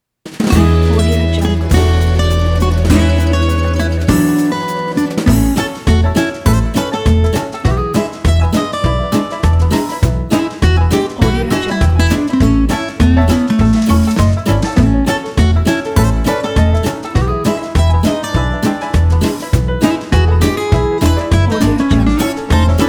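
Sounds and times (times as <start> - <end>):
jolly retro jazz: 0.3 - 22.8.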